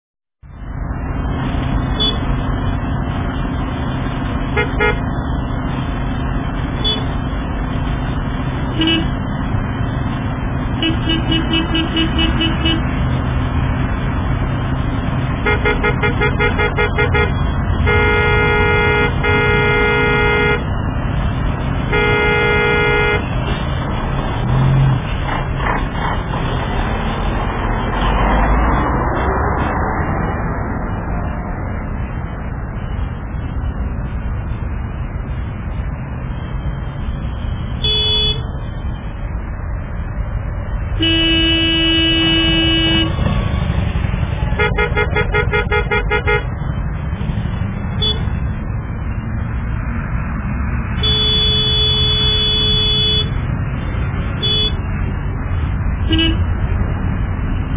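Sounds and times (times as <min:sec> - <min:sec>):
traffic jam: 0:00.4 - 0:57.7.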